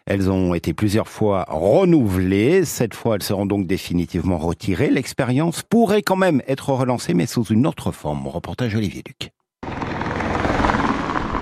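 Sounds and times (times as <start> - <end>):
speech: 0.1 - 9.8
cars humming as they drive over a solar road: 9.6 - 11.4.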